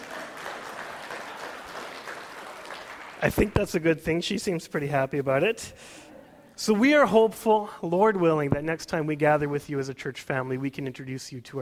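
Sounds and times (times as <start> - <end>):
audience clapping: 0.0 - 4.2
speech: 3.2 - 6.0, 6.6 - 11.5.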